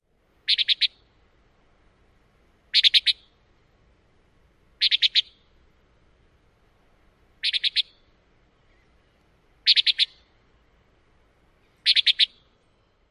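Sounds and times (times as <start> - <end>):
Antillean Nighthawk flight calls: 0.5 - 1.1, 2.7 - 3.3, 4.8 - 5.5, 7.4 - 10.4, 11.6 - 12.5.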